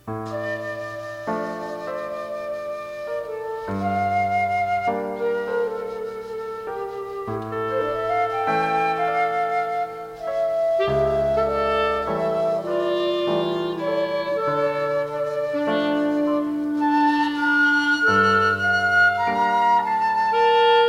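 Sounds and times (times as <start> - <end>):
clarinet in a trio: 0.0 - 20.8
flute in a trio: 0.0 - 20.8
piano in a trio: 0.0 - 20.8.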